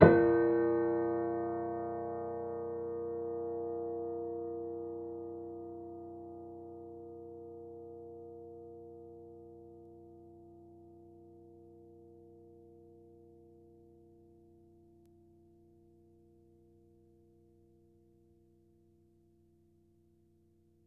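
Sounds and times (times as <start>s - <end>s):
low-mid piano harmonics: 0.0s - 4.8s.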